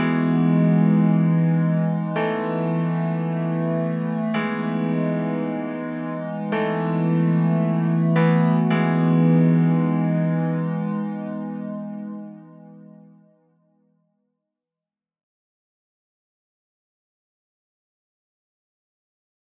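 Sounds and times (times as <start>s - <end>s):
keyboard playing: 0.0s - 12.8s.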